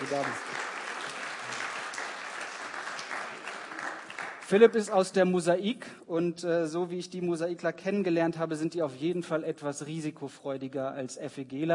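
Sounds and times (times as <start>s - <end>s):
audience clapping: 0.0s - 4.9s
speech: 0.1s - 0.5s, 4.5s - 11.7s.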